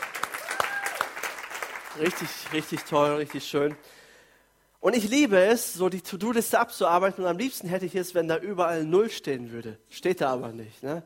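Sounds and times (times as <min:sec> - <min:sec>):
audience applause: 0:00.0 - 0:03.8
speech: 0:02.0 - 0:04.0, 0:04.8 - 0:11.0.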